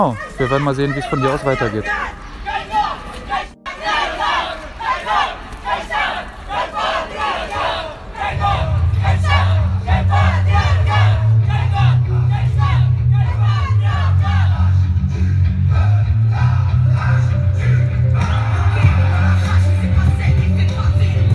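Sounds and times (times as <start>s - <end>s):
speech: 0.0s - 2.2s
protest crowd chanting and shouting: 0.0s - 21.3s
scattered claps: 4.4s - 9.6s.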